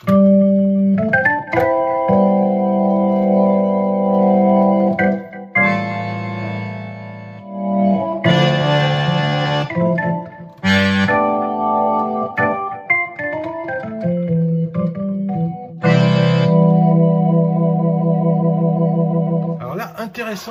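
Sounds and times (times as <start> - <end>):
digital accordion playing organ-style chords: 0.0 - 19.6.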